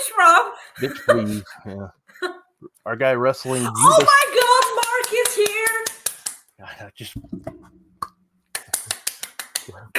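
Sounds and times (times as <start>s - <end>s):
speech: 0.1s - 6.0s, 6.6s - 7.6s
hands clapping: 4.0s - 6.5s, 8.0s - 9.9s.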